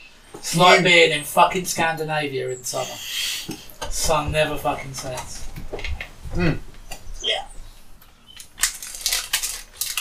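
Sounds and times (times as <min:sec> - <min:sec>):
speech: 0:00.4 - 0:06.7
person murmuring: 0:02.7 - 0:03.6, 0:06.3 - 0:07.5
crunching crunchy snacks: 0:08.3 - 0:09.9.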